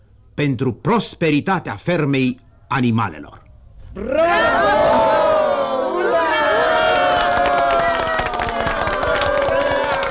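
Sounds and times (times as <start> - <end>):
speech: 0.4 - 5.0
crowd cheering enthusiastically: 4.0 - 10.0
rapid scattered hand claps: 7.1 - 10.0.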